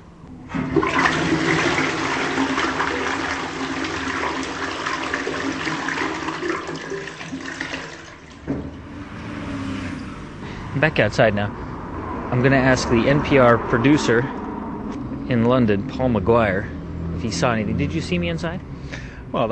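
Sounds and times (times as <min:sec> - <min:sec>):
stainless steel prison toilet flushing: 0:00.4 - 0:09.0
speech: 0:10.8 - 0:11.6, 0:12.3 - 0:14.4, 0:15.3 - 0:18.7.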